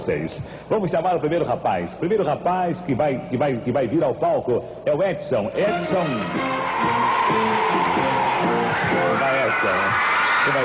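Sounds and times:
speech: 0.0 - 10.6
cheering voices and whoops: 6.2 - 10.6
crowd clapping: 6.4 - 10.6.

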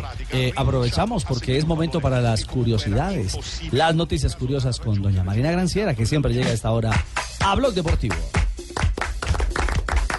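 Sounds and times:
speech: 0.3 - 8.4
small group applauding in a studio: 8.0 - 10.1.

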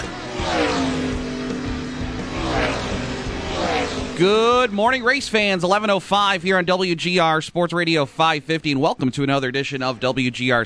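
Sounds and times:
race car engine roaring and revving: 0.0 - 6.0
speech: 4.2 - 10.6.

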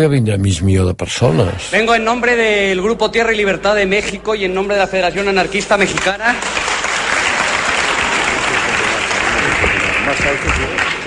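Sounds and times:
speech: 0.0 - 6.7, 10.1 - 11.0
crowd applauding: 5.6 - 11.0.

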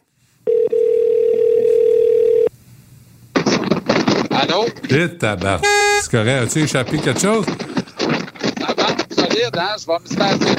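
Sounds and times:
telephone dial tone: 0.5 - 2.5
crackly rustling noise: 3.3 - 5.6, 6.2 - 10.5
speech: 4.5 - 7.7, 9.5 - 10.5.

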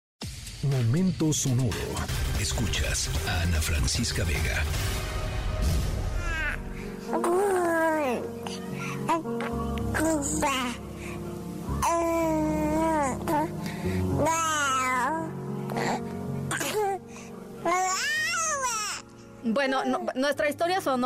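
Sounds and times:
speech: 0.6 - 5.9, 9.1 - 10.8, 19.4 - 21.0
baby crying: 6.0 - 11.0, 11.6 - 19.1.

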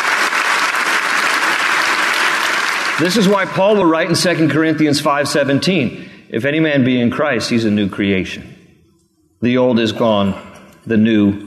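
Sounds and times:
audience clapping: 0.0 - 4.7
speech: 3.0 - 8.5, 9.4 - 11.4.

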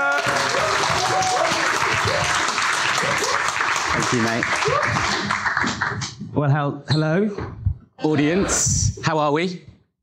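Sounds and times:
audience applause: 0.0 - 6.1
speech: 4.1 - 5.4, 6.4 - 9.7.

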